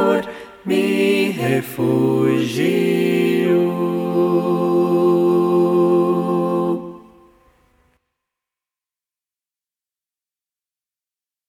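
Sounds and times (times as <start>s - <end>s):
SATB choir singing: 0.0s - 7.6s.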